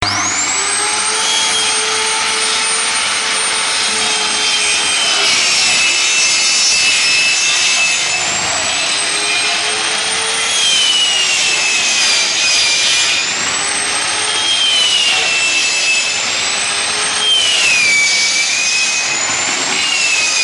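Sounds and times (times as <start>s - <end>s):
circular saw: 0.0s - 20.4s.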